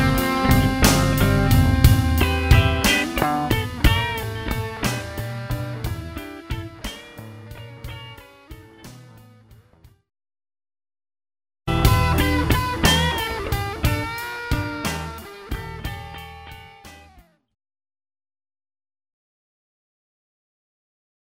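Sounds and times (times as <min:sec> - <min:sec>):
blues punk song: 0:00.0 - 0:09.6, 0:11.7 - 0:17.3.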